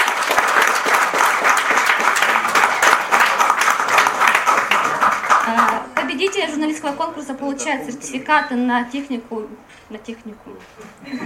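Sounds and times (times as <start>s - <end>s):
loud stormy crowd applause: 0.0s - 6.6s
speech: 6.2s - 11.2s.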